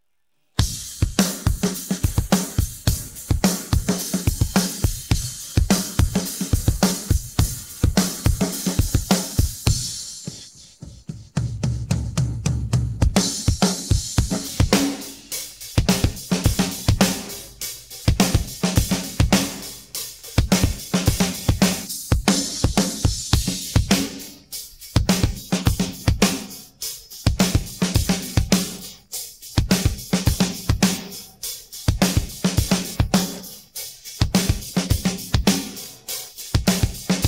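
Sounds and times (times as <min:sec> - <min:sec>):
drums: 0:00.5 - 0:37.2.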